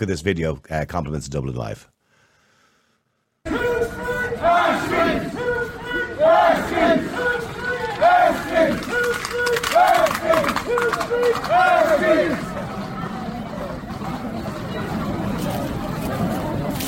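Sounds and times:
speech: 0:00.0 - 0:02.0
large street protest crowd chanting and shouting: 0:03.4 - 0:16.8.

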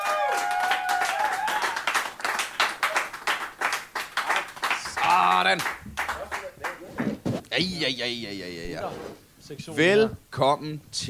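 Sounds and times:
comedy festival audience clapping for arriving guests: 0:00.0 - 0:07.2
speech: 0:05.4 - 0:06.0, 0:07.6 - 0:11.0.

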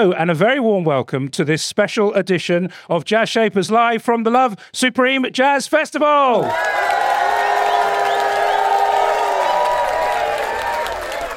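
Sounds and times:
speech: 0:00.0 - 0:07.1
dense applause at a jazz festival: 0:06.4 - 0:11.3
festival crowd cheering at a jazz festival: 0:06.4 - 0:11.3
high whoops from the festival crowd: 0:06.4 - 0:11.3.

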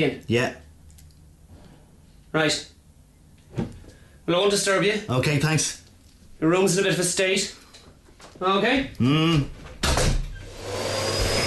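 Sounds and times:
speech: 0:00.0 - 0:00.6, 0:02.3 - 0:02.7, 0:04.3 - 0:05.8, 0:06.4 - 0:07.6, 0:08.4 - 0:09.6
vacuum cleaner running: 0:10.4 - 0:11.4.

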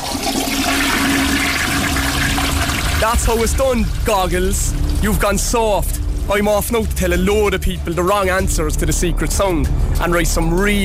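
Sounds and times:
toilet flushing: 0:00.0 - 0:05.6
speech: 0:03.0 - 0:10.8.

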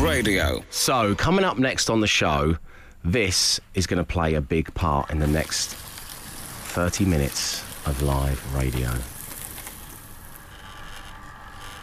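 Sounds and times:
speech: 0:00.2 - 0:05.9, 0:06.8 - 0:09.1
paper shredder shredding a driving licence: 0:05.2 - 0:11.8.

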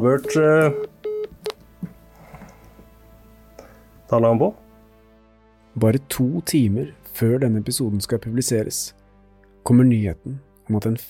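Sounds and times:
speech: 0:00.0 - 0:00.9, 0:04.1 - 0:04.6, 0:05.8 - 0:09.0, 0:09.6 - 0:11.0
electronic telephone dialing tones: 0:00.2 - 0:01.6.

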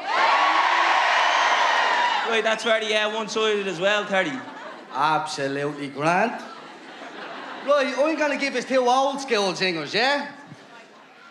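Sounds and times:
crowd cheering and whooping: 0:00.0 - 0:02.6
speech: 0:02.3 - 0:06.5, 0:07.6 - 0:10.4
laughter: 0:03.8 - 0:11.2.

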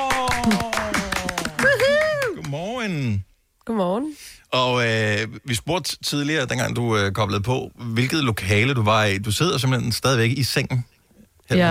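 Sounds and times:
applause: 0:00.0 - 0:02.6
speech: 0:00.4 - 0:00.7, 0:03.7 - 0:10.9, 0:11.5 - 0:11.6.

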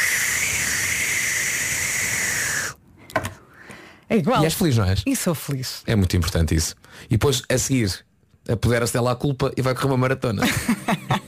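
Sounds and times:
voice imitating a whipped cream can spraying: 0:00.0 - 0:02.8
faint breathy sounds: 0:00.0 - 0:04.1
speech: 0:04.1 - 0:11.0
laughter: 0:10.4 - 0:11.2.

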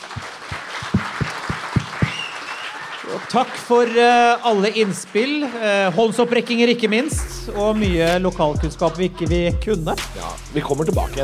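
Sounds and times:
audience applause: 0:00.0 - 0:07.2
speech: 0:03.1 - 0:11.2.

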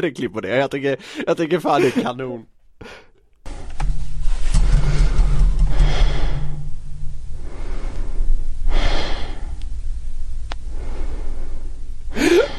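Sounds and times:
speech: 0:00.0 - 0:03.0
low steady hum: 0:03.5 - 0:12.5
man breathing in deep sleep: 0:04.7 - 0:12.5.

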